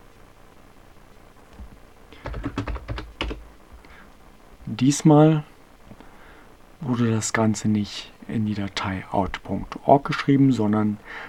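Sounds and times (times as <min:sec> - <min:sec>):
low noise: 0:00.0 - 0:11.2
computer keyboard keys clicking as Ctrl+C is pressed: 0:01.6 - 0:03.5
speech: 0:04.7 - 0:05.5, 0:06.9 - 0:11.2.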